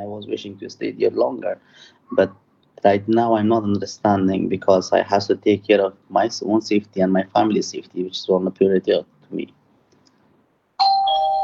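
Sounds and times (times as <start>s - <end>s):
speech: 0.0s - 9.6s
electronic doorbell chime: 10.8s - 11.4s.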